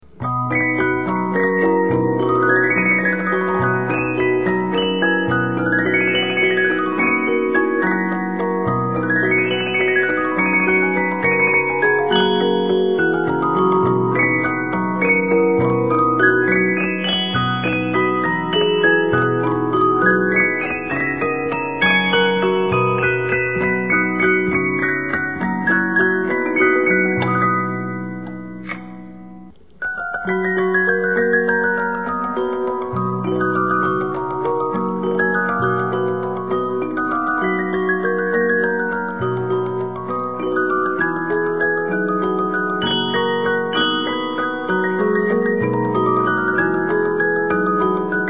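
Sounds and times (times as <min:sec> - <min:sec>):
Reuge music box: 0:00.0 - 0:48.2.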